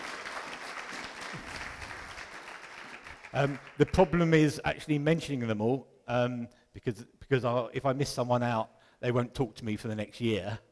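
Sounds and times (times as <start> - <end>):
audience clapping: 0.0 - 4.2
speech: 3.3 - 10.7.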